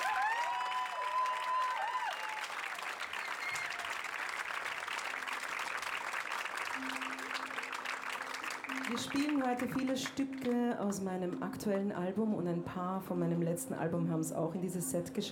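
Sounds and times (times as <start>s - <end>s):
whistles and cheers: 0.0s - 4.3s
concert audience applause: 0.0s - 11.4s
speech: 8.9s - 15.2s.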